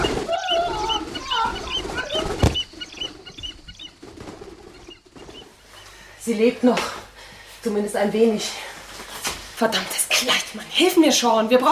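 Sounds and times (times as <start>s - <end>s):
bird of prey screeching while attacking: 0.0s - 3.8s
bird of prey wings flapping: 0.0s - 5.9s
speech: 6.3s - 7.0s, 7.6s - 8.7s, 9.6s - 11.7s.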